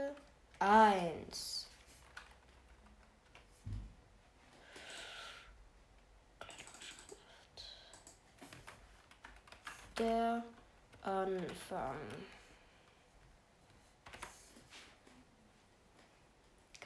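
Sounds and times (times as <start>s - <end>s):
speech: 0.2s - 1.6s, 10.0s - 12.4s
soft computer keyboard typing: 1.9s - 3.6s, 6.4s - 12.4s, 14.0s - 14.4s.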